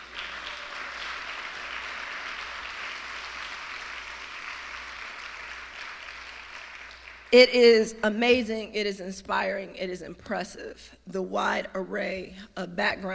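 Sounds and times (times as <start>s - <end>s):
crowd applauding: 0.0s - 7.4s
speech: 7.3s - 13.1s.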